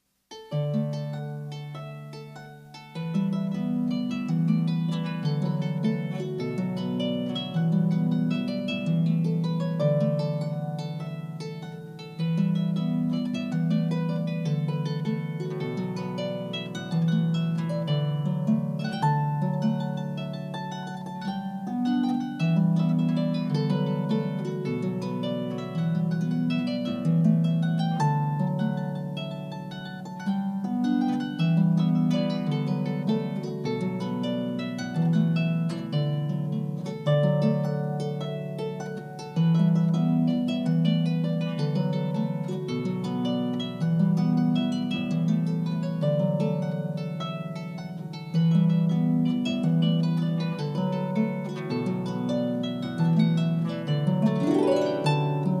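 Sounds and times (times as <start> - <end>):
harp: 0.0 - 55.5.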